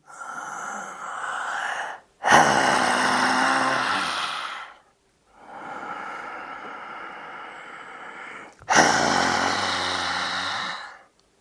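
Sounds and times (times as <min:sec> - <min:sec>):
person doing yoga lion breath imitating a lion's roar: 0:02.2 - 0:04.7, 0:08.7 - 0:11.0.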